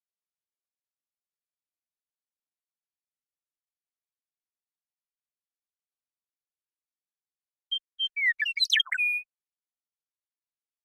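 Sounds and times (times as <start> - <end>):
Western meadowlark song: 7.4 - 9.4.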